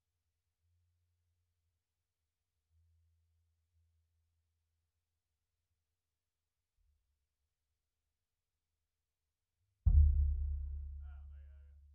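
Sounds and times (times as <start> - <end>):
sub bass: 9.9 - 11.9.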